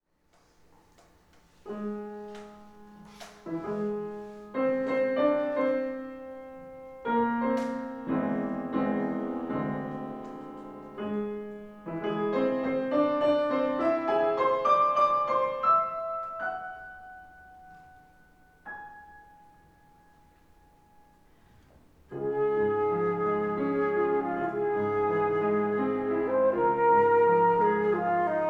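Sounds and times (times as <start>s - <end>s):
classical music piece: 0.4s - 28.4s.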